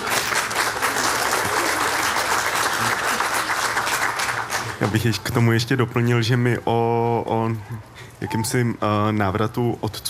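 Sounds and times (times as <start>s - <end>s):
audience applause: 0.0s - 5.1s
speech: 4.8s - 10.0s.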